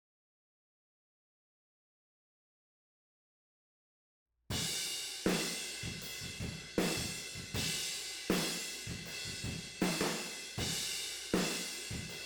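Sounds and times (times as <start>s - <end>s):
tom drums: 4.6s - 12.2s.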